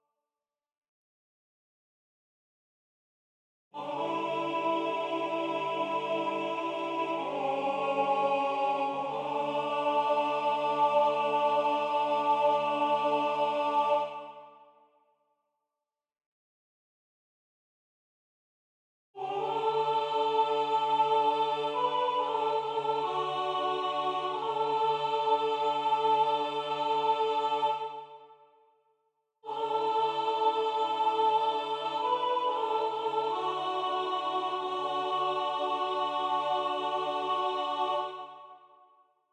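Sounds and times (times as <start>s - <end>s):
soprano and alto voices singing: 3.8s - 14.6s, 19.2s - 28.3s, 29.4s - 38.6s.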